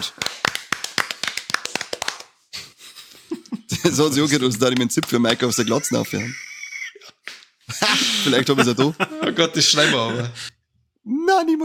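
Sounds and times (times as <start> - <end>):
speech: 0.0 - 0.4, 3.8 - 6.5, 8.2 - 10.6, 11.4 - 11.6
hands clapping: 0.0 - 2.7, 3.9 - 6.4, 7.2 - 8.2
laughter: 2.6 - 10.5.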